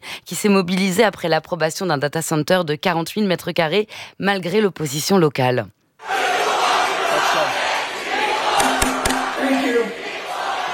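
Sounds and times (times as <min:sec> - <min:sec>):
speech: 0:00.3 - 0:05.8
protest crowd chanting slogan in New Jersey: 0:06.0 - 0:10.7.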